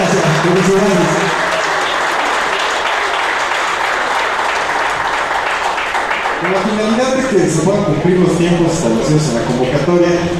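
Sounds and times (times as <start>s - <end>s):
audience applause at a meeting for a federation: 0.0s - 7.4s
speech: 0.4s - 1.4s, 6.6s - 10.3s.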